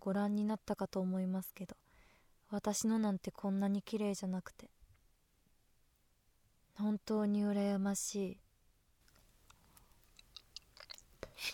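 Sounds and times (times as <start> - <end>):
speech: 0.0 - 1.8, 2.5 - 4.7, 6.8 - 8.4
person chewing food: 9.7 - 11.4.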